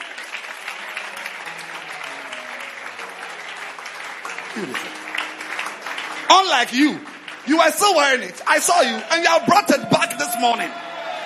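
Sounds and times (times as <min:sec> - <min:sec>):
audience applause: 0:00.0 - 0:11.2
speech: 0:04.6 - 0:05.0, 0:06.3 - 0:10.8.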